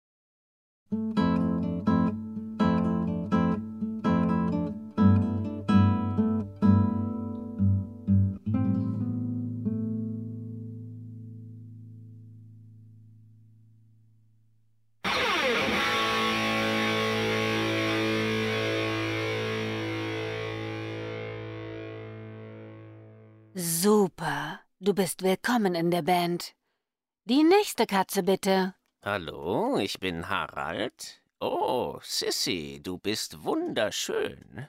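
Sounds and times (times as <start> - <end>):
classical guitar playing: 0.9 - 13.0, 15.0 - 23.6
speech: 24.9 - 26.6, 27.2 - 34.6.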